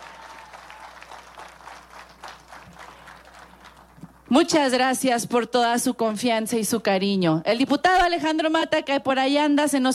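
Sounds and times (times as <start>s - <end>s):
audience applause: 0.0s - 3.9s
speech: 4.3s - 9.9s.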